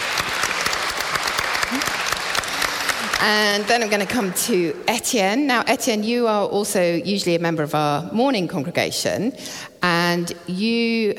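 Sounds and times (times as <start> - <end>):
round of applause: 0.0 - 4.3
speech: 3.2 - 11.1.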